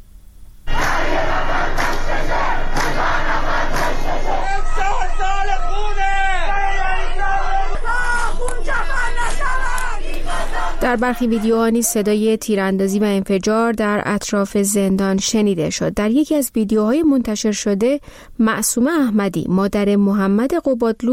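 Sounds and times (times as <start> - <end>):
large crowd shouting and chanting outside a prison: 0.7 - 12.2
speech: 10.8 - 21.1.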